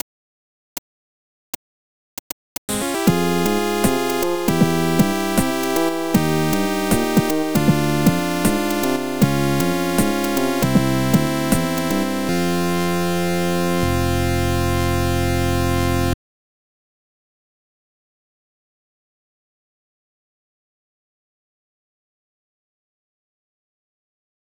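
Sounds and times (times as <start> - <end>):
game over sound: 2.7 - 16.2.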